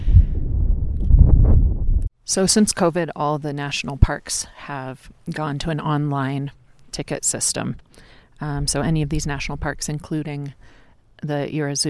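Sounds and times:
wind blowing on microphone: 0.0s - 2.1s
speech: 2.3s - 11.8s.

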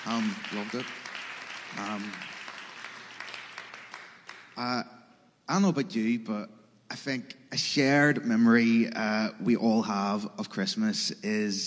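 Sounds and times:
speech: 0.0s - 1.1s, 1.7s - 2.4s, 4.6s - 11.6s
round of applause: 0.0s - 4.7s.

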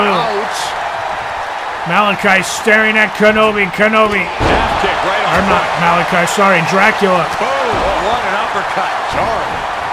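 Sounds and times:
excited commentary: 0.0s - 0.8s, 1.8s - 9.8s
speech: 1.8s - 9.7s
wrestler slamming an opponent down in a wrestling video game: 4.3s - 5.7s.

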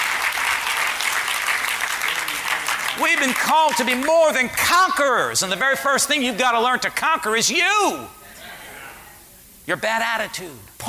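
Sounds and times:
weak audience hand clapping: 0.0s - 4.1s
speech: 3.0s - 8.2s, 9.6s - 10.8s.

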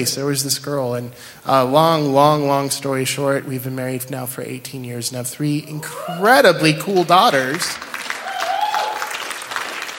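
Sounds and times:
speech: 0.0s - 7.9s
audience clapping: 7.3s - 9.9s.

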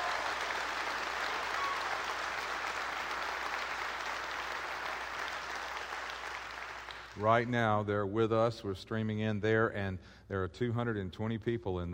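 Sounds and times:
audience applause welcoming a church group: 0.0s - 7.2s
speech: 7.2s - 11.9s.

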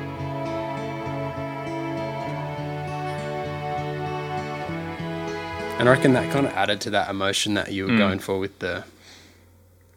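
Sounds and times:
string section of cello, violin and viola playing sustained chords: 0.0s - 7.3s
speech: 5.8s - 9.0s.

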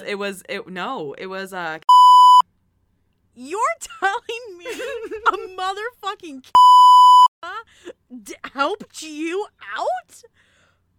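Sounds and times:
speech: 0.0s - 1.9s, 3.4s - 6.8s, 7.4s - 10.5s
censor bleep: 1.9s - 2.4s, 6.6s - 7.3s.

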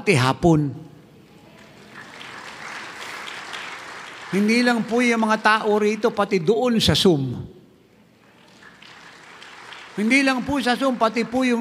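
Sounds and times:
speech: 0.0s - 0.8s, 4.3s - 7.5s, 10.0s - 11.5s
audience applause: 1.4s - 5.9s, 8.2s - 11.5s.

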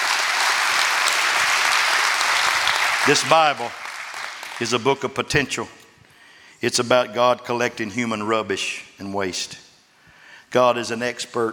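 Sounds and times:
audience clapping: 0.0s - 5.0s
speech: 3.1s - 3.8s, 4.6s - 5.8s, 6.6s - 9.6s, 10.5s - 11.5s.

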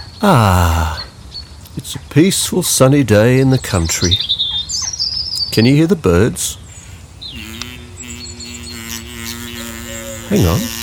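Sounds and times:
speech: 0.2s - 1.0s, 1.8s - 4.4s, 5.6s - 6.6s, 10.3s - 10.8s
bee buzzing from flower to flower: 6.8s - 10.8s.

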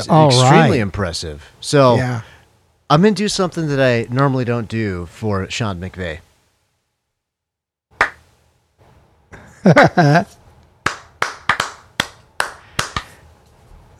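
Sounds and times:
speech: 0.0s - 2.3s, 2.9s - 6.3s, 9.6s - 10.4s
hand claps: 8.0s - 8.3s, 10.8s - 13.2s.

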